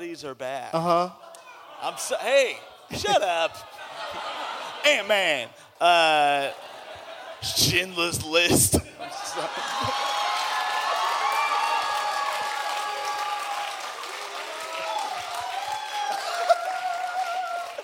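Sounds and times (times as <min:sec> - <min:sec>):
speech: 0:00.1 - 0:04.2, 0:04.8 - 0:06.7, 0:07.4 - 0:10.1
laughter: 0:01.1 - 0:10.7, 0:16.0 - 0:17.8
live audience at a stage show cheering: 0:01.3 - 0:07.6, 0:09.0 - 0:17.8
applause: 0:09.5 - 0:17.8.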